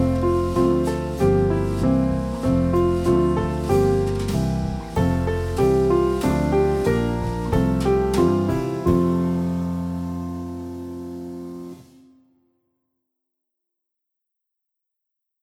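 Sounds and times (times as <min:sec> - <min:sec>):
Lieder playback: 0:00.0 - 0:12.0.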